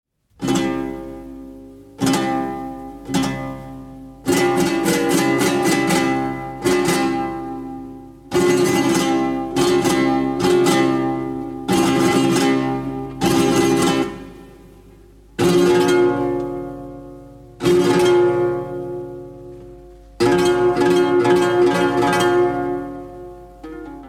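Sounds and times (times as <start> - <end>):
flamenco music: 0.4 - 24.0.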